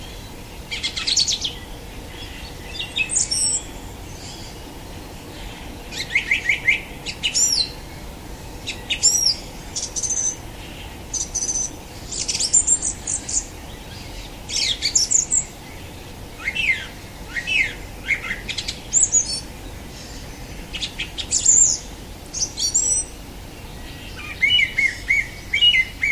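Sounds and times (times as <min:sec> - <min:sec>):
song thrush singing whistled, squeaky and fluty phrases: 0:00.0 - 0:26.0.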